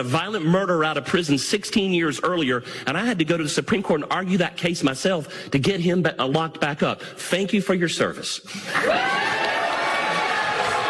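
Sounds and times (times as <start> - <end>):
speech: 0.0 - 9.3
crowd cheering at a political debate: 8.6 - 10.8.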